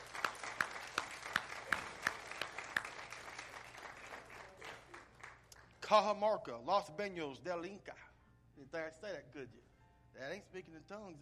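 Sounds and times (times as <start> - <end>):
audience applause: 0.0 - 5.7
speech: 5.9 - 8.0, 8.6 - 9.6, 10.2 - 11.2.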